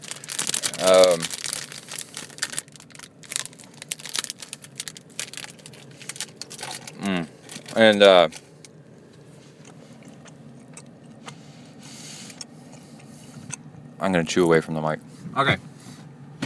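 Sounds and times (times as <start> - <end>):
Amrita snack bar wrapper crinkling: 0.0 - 11.2
speech: 0.8 - 1.3, 14.0 - 15.6.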